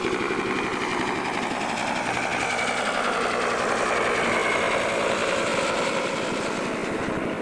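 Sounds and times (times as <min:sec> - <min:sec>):
Huey helicopter flying over: 0:00.0 - 0:07.4.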